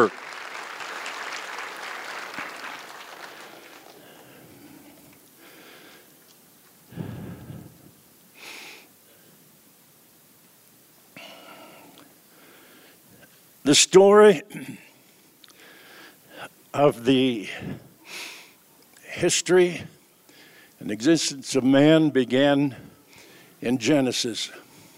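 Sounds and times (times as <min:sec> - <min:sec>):
speech: 0:00.0 - 0:00.2, 0:13.7 - 0:14.8, 0:16.7 - 0:18.3, 0:19.2 - 0:20.0, 0:20.8 - 0:22.9, 0:23.6 - 0:24.6
round of applause for the cast: 0:00.0 - 0:05.2.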